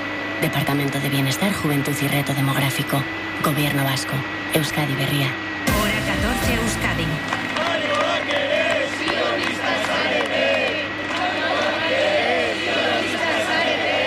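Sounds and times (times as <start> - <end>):
speech: 0.4 - 7.5
crowd shouting slogans in unison: 7.4 - 14.0.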